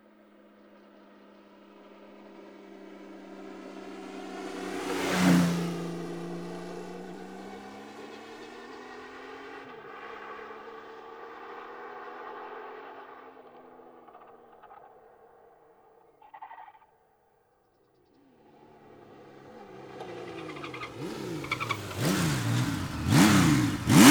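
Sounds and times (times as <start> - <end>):
motorcycle engine: 3.1 - 8.5, 18.6 - 24.0.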